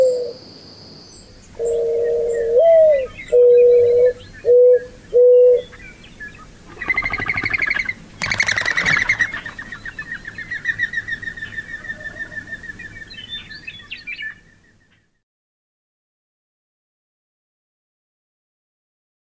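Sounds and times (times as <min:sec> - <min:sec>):
mourning dove song: 0:00.0 - 0:00.5, 0:01.1 - 0:15.1.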